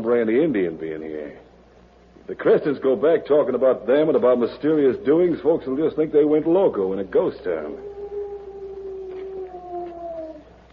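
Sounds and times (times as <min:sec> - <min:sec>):
speech: 0:00.0 - 0:01.5, 0:02.3 - 0:07.9
human voice imitating owl hoot as a signal: 0:07.7 - 0:10.5.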